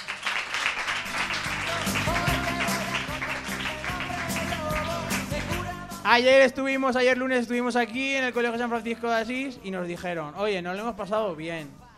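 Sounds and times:
audience applause: 0.0 - 5.6
speech: 6.1 - 11.8.

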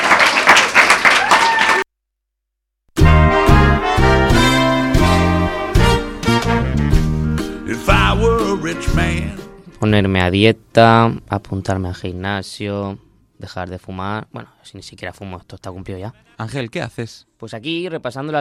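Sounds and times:
group applause: 0.0 - 1.9
upbeat music: 3.0 - 9.8
speech: 8.7 - 18.3.

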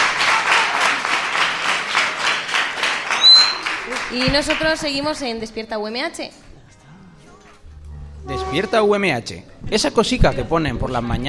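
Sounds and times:
group applauding: 0.0 - 5.3
speech: 4.1 - 6.5, 8.2 - 11.2
brief high squeak: 7.9 - 9.0.

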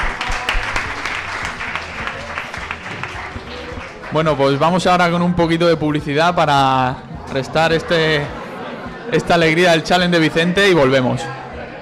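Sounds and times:
audience applause: 0.0 - 5.0
speech: 4.1 - 8.4, 9.1 - 11.4.

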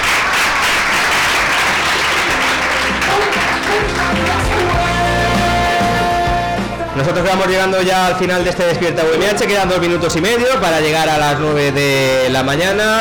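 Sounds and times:
loud applause: 0.0 - 6.6
music: 1.0 - 12.9
speech: 7.0 - 12.9.

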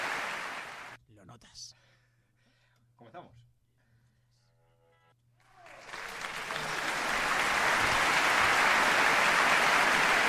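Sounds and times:
played applause sound effect: 0.0 - 1.0, 5.4 - 10.2.

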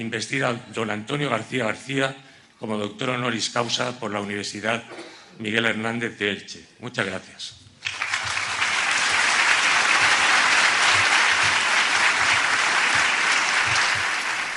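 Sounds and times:
speech: 0.0 - 7.6
audience applause at ceremony: 7.8 - 14.5.

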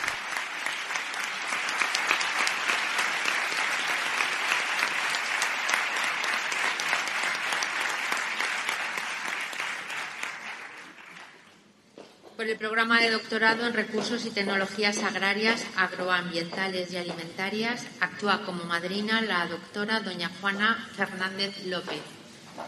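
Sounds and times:
audience applause at graduation ceremony: 0.0 - 11.5
speech: 12.4 - 22.2.

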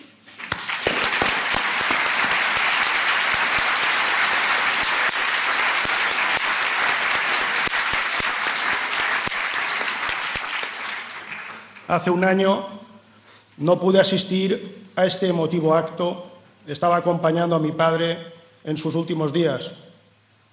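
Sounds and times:
audience applause: 0.4 - 11.9
speech: 11.9 - 12.8, 13.6 - 19.8.

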